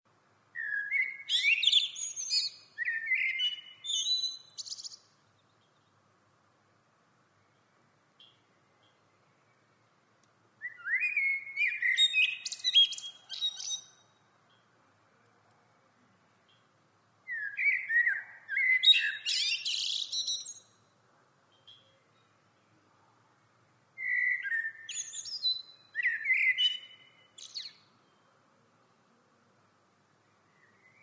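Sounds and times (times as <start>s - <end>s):
common blackbird singing: 0.5s - 5.8s, 10.6s - 14.6s, 17.3s - 20.8s, 24.0s - 28.3s, 30.5s - 31.0s.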